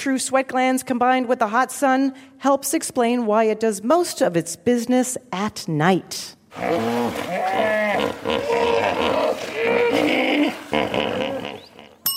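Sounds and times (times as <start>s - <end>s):
speech: 0.0s - 11.3s
hippopotamus calling in deep honking grunts and wheezy bellows: 6.5s - 12.0s.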